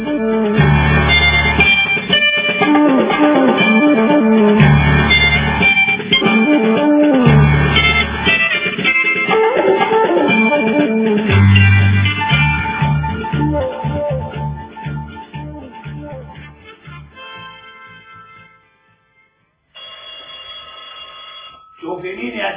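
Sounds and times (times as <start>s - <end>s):
music: 0.0s - 19.7s
electric doorbell ringing: 19.8s - 22.5s.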